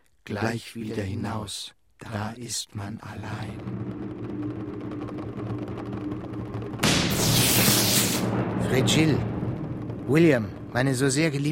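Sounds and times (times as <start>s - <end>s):
speech: 0.3s - 4.0s, 8.6s - 9.3s, 10.1s - 11.5s
thunder: 3.3s - 11.5s.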